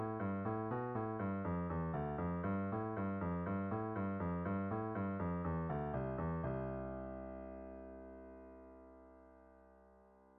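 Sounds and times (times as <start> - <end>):
piano playing crossing two over one: 0.0 - 9.8.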